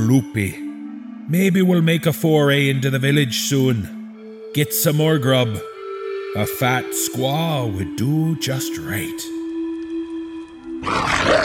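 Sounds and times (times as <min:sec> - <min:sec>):
speech: 0:00.0 - 0:00.6, 0:01.3 - 0:05.7, 0:06.3 - 0:09.3
bestial growl of a creature: 0:10.8 - 0:11.4.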